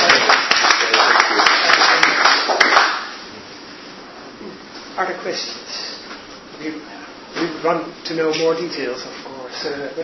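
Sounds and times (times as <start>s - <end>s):
crowd applauding: 0.0s - 3.2s
speech: 5.2s - 5.6s, 6.6s - 6.9s, 7.6s - 10.0s.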